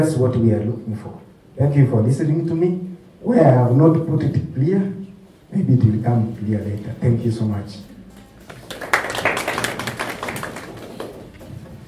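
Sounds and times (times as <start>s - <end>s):
speech: 0.0s - 7.9s
audience clapping: 8.4s - 11.8s.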